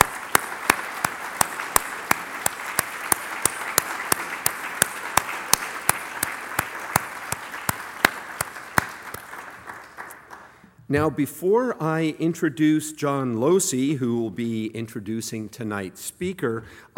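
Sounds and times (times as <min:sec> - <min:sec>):
audience applause: 0:00.0 - 0:10.6
speech: 0:10.9 - 0:16.9.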